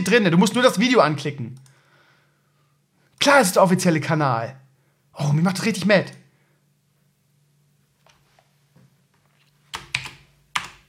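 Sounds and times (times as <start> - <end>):
speech: 0.0 - 1.7, 3.2 - 4.6, 5.2 - 6.2
typing on a computer keyboard: 9.7 - 10.8.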